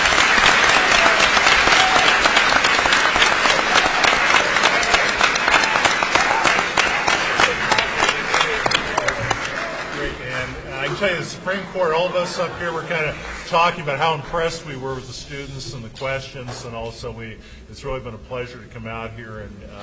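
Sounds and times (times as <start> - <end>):
audience applause: 0.0 - 14.2
speech: 11.0 - 19.8.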